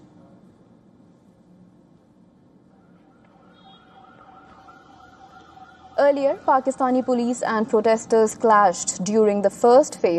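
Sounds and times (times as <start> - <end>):
street and traffic noise: 0.0 - 10.1
ambulance siren wailing: 2.8 - 7.4
speech: 6.0 - 10.1.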